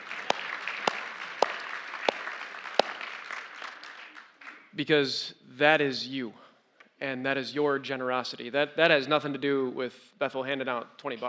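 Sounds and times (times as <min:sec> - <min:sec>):
crowd applause: 0:00.0 - 0:04.7
speech: 0:04.8 - 0:06.4, 0:07.0 - 0:11.2.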